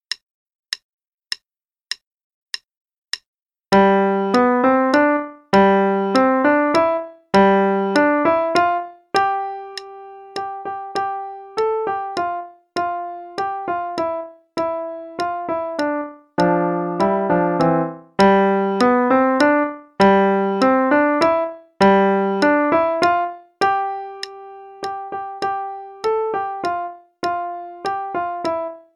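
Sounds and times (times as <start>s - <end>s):
waltz music: 3.8s - 28.9s.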